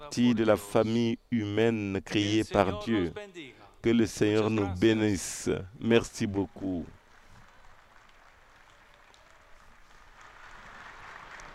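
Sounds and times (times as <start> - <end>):
speech: 0.1 - 7.0
Spanish-speaking pilgrims applauding at a papal audience in St Peter's Square: 6.0 - 11.5.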